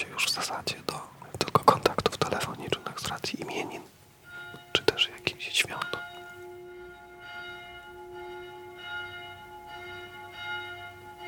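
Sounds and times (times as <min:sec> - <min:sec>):
speech: 0:00.0 - 0:03.9
church bell ringing at noon: 0:04.2 - 0:11.2.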